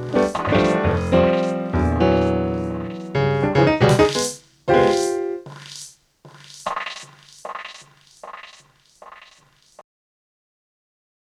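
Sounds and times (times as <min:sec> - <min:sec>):
piano: 0:00.0 - 0:05.8.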